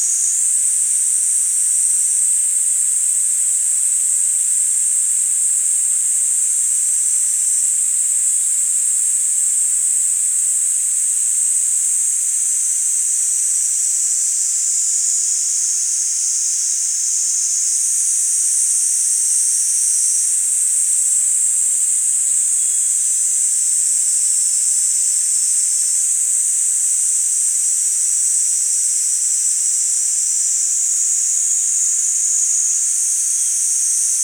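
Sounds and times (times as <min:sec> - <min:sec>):
Platypleura kaempferi cicada calling: 0:00.0 - 0:34.2.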